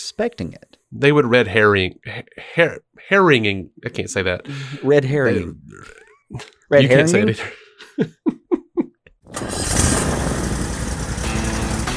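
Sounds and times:
speech: 0.2s - 8.4s
laughter: 6.0s - 9.0s
Toro Z Master 4000 zero-turn mower starting up: 9.3s - 11.9s.

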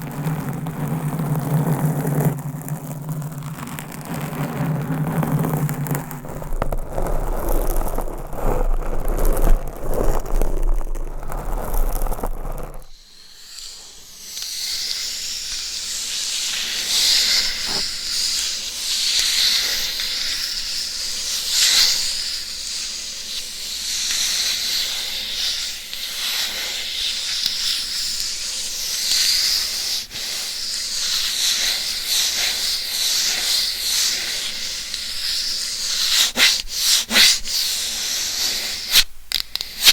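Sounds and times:
rubbing on a binaural mic: 0.0s - 12.9s, 17.6s - 17.8s
hissy scraping on a binaural mic: 0.0s - 39.9s.

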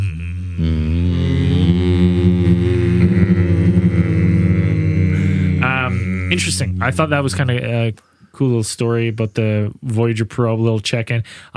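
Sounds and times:
speech: 0.6s - 1.0s, 6.4s - 11.5s
low hum of plasma waves in space: 0.6s - 7.8s.

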